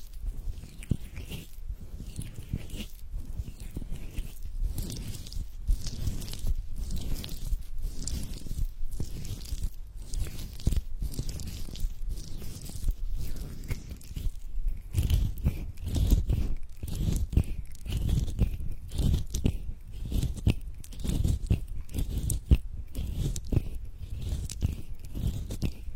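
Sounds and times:
hand massage rubbing strokes: 0.0 - 25.9.

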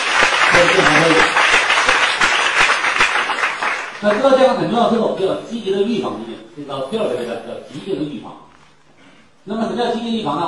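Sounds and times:
audience applause: 0.0 - 4.3
speech: 4.0 - 8.5, 9.4 - 10.4.

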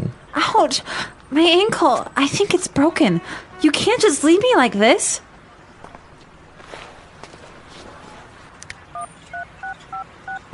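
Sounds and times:
faint noise: 0.0 - 10.5
speech: 0.6 - 5.3
shuffling, scuffing movement: 5.7 - 9.0
two-tone phone keypad beeps: 8.9 - 10.5.

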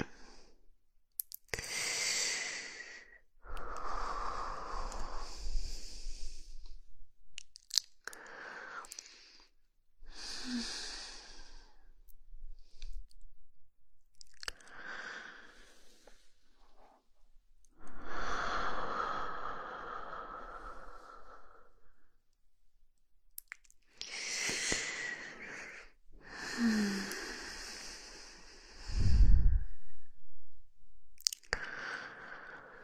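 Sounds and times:
slow breathing: 1.6 - 6.9, 8.1 - 13.2, 14.5 - 17.0, 17.8 - 22.2, 24.0 - 30.4, 31.5 - 32.8.

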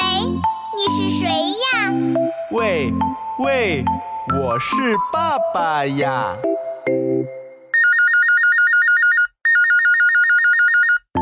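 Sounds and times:
speech: 0.2 - 6.5
telephone ringing: 7.7 - 11.1.

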